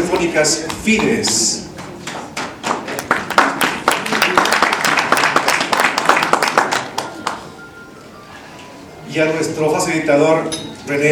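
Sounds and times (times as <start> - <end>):
speech: 0.1 - 1.7, 9.2 - 11.1
strong applause: 0.2 - 7.5.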